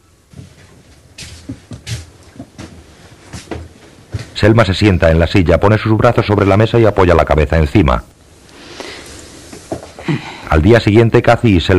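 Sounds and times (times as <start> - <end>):
money box being put away in a cupboard, wooden knocks and scraping clunks: 0.3 - 4.4, 9.5 - 10.0
speech: 4.4 - 8.2, 10.1 - 11.7.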